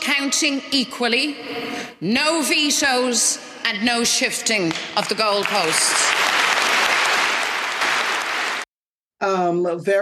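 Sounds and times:
speech: 0:00.2 - 0:06.2, 0:09.2 - 0:10.0
applause in a packed hall: 0:05.0 - 0:08.7.

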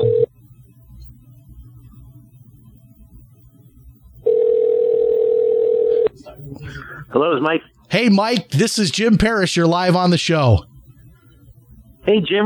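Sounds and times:
telephone tones as a call is placed from a radio studio: 0:00.0 - 0:00.3, 0:04.2 - 0:06.1
speech: 0:07.1 - 0:10.7, 0:12.0 - 0:12.4.

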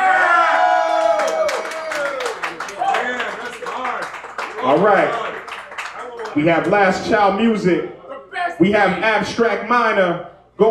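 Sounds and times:
live crowd cheering and whooping: 0:00.0 - 0:03.4
sustained irregular clapping: 0:01.2 - 0:06.8
speech: 0:04.7 - 0:05.2, 0:06.3 - 0:08.0, 0:08.6 - 0:10.6.

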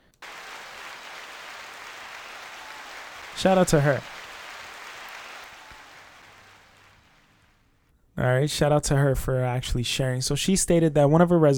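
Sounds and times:
hand claps: 0:00.0 - 0:07.6
speech: 0:03.4 - 0:04.1, 0:08.2 - 0:11.5.

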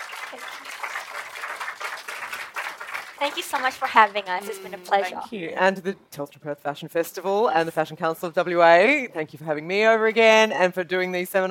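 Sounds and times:
audience applause: 0:00.0 - 0:05.0
speech: 0:00.3 - 0:00.7, 0:03.2 - 0:11.4.

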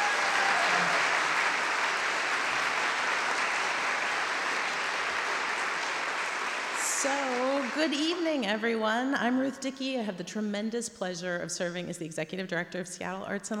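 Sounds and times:
audience applause: 0:00.0 - 0:08.2
speech: 0:07.0 - 0:13.5.

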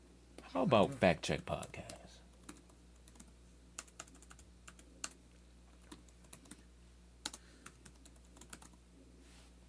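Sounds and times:
hum: 0:00.0 - 0:09.6
speech: 0:00.5 - 0:01.9
typing on a computer keyboard: 0:01.6 - 0:05.2, 0:05.8 - 0:06.6, 0:07.2 - 0:08.8.

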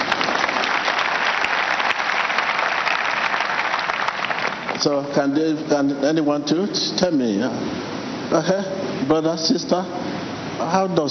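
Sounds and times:
audience applause: 0:00.0 - 0:05.0
speech: 0:04.8 - 0:11.1.

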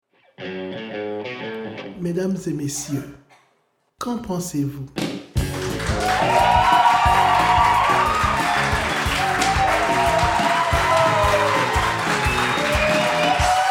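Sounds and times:
speech: 0:02.0 - 0:03.2, 0:04.0 - 0:05.1, 0:05.9 - 0:07.6
small scattered live audience at the Cabane de Val d'Or cheering and clapping: 0:05.4 - 0:13.6.

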